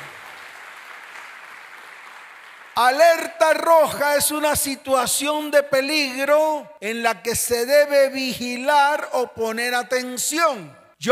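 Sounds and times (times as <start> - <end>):
audience applause: 0.0 - 2.8
speech: 2.8 - 11.1.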